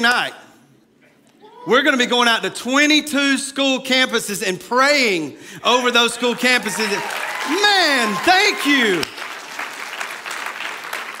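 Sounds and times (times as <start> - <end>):
speech: 0.0 - 0.5, 1.6 - 9.2
audience clapping: 6.2 - 11.1.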